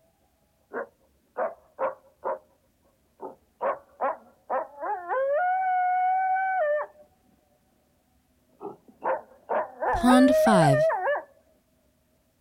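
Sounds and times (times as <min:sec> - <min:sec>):
coyote yipping and howling: 0:03.6 - 0:07.0, 0:10.8 - 0:11.3
speech: 0:10.0 - 0:11.0.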